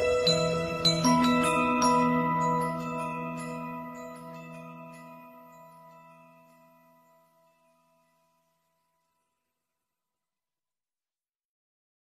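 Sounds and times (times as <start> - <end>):
Samsung ringtone slowed with reverb: 0.2 - 8.4.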